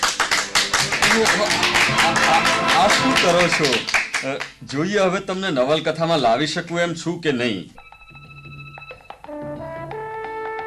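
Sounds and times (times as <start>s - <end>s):
group applause from friends honouring a novelist: 0.0s - 4.6s
speech: 1.2s - 7.8s.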